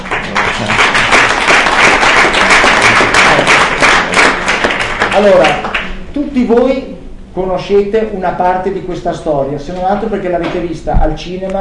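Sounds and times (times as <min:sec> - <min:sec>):
audience applause: 0:00.0 - 0:06.0
speech: 0:05.2 - 0:05.7, 0:06.3 - 0:11.6.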